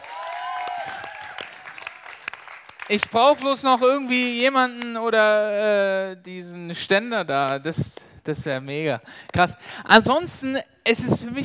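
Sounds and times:
cheers and whoops: 0:00.0 - 0:02.0
audience applause: 0:00.0 - 0:03.4
speech: 0:02.9 - 0:11.4.

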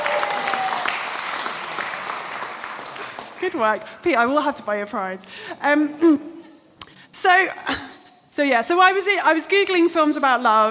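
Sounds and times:
audience applause: 0:00.0 - 0:03.5
speech: 0:03.4 - 0:06.4, 0:07.2 - 0:07.8, 0:08.4 - 0:10.6.

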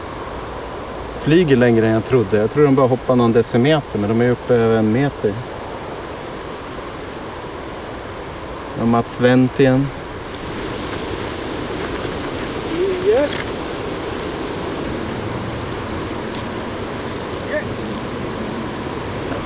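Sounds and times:
strong wind blowing: 0:00.0 - 0:19.4
speech: 0:01.2 - 0:05.5, 0:08.8 - 0:10.0.

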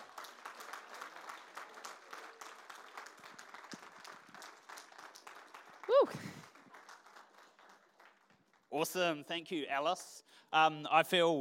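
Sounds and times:
audience applauding: 0:00.0 - 0:09.0
speech: 0:06.0 - 0:06.4, 0:08.8 - 0:11.3.

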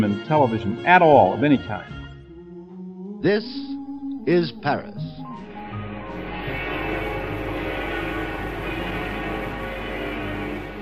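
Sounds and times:
speech: 0:00.0 - 0:02.0, 0:03.2 - 0:05.2
great bells of Notre Dame Cathedral ringing: 0:05.6 - 0:10.7.

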